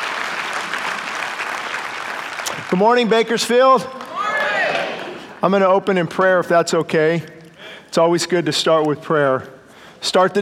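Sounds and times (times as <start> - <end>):
church congregation applauding a guest at the pulpit: 0.0 - 5.9
speech: 2.7 - 4.0, 5.4 - 10.4.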